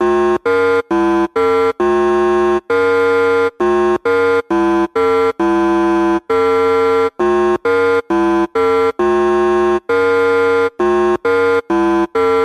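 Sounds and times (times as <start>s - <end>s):
8-bit electronic loops: 0.0s - 12.4s.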